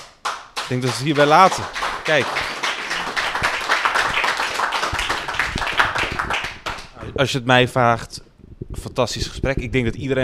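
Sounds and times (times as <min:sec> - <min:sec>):
crowd applause: 0:00.2 - 0:07.2
speech: 0:00.7 - 0:02.4, 0:07.2 - 0:08.2, 0:08.9 - 0:10.2.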